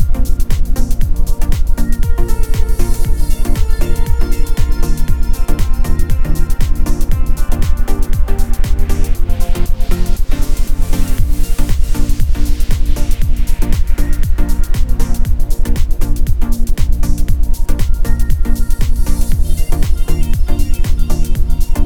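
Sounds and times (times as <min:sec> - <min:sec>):
isochronic ambient tones: 0:00.0 - 0:21.8.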